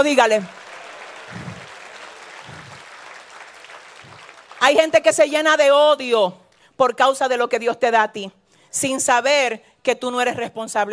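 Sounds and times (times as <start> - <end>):
speech: 0.0 - 0.6, 4.6 - 10.9
audience applause: 0.3 - 4.8.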